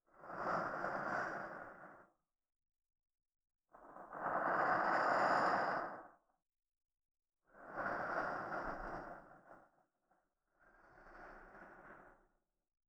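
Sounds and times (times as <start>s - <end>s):
soft sleep-inducing voice in right channel: 0.1s - 2.2s, 3.8s - 6.2s, 7.6s - 9.8s, 10.5s - 12.3s.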